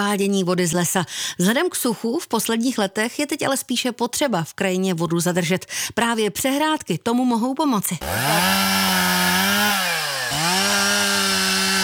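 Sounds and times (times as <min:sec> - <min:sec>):
speech: 0:00.0 - 0:08.9
volunteers sawing pieces of wood: 0:08.0 - 0:11.8.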